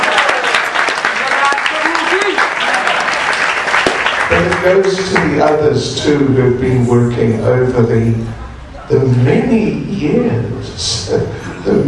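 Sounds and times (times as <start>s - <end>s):
crowd round of applause: 0.0s - 6.0s
speech: 4.3s - 11.8s.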